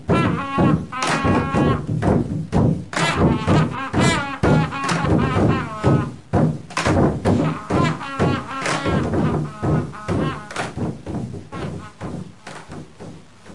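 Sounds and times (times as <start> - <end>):
fanfare: 0.1 - 2.0, 2.9 - 6.2, 6.9 - 12.3.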